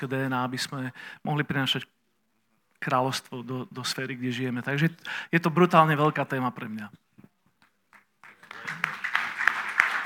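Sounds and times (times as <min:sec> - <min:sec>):
speech: 0:00.0 - 0:02.0, 0:02.8 - 0:07.1
audience applause after a first answer in a discussion: 0:08.2 - 0:10.0.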